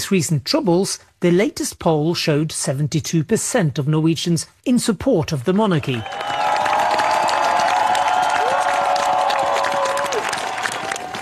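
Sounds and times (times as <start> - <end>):
speech: 0.0 - 6.5
crowd in Oslo cheering the royal family on the palace balcony: 5.8 - 11.2.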